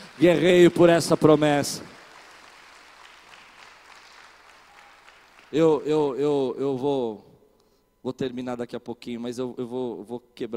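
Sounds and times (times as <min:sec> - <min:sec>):
audience applause: 0:00.0 - 0:05.6
speech: 0:00.2 - 0:02.0, 0:05.5 - 0:07.3, 0:08.0 - 0:10.5.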